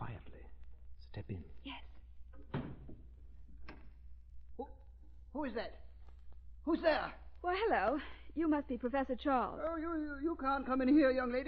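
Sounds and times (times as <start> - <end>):
speech: 1.2 - 1.8, 5.4 - 5.8, 6.6 - 11.4
door being shut, radio drama sound effect: 2.3 - 4.0.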